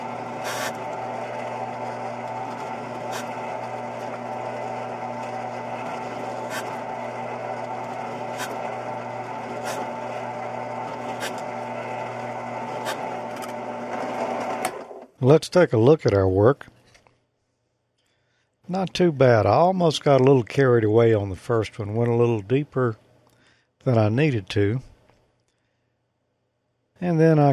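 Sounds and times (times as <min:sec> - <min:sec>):
spot weld cutter motor whine: 0:00.0 - 0:15.0
speech: 0:15.2 - 0:16.7, 0:18.8 - 0:23.0, 0:23.8 - 0:24.9, 0:27.0 - 0:27.5.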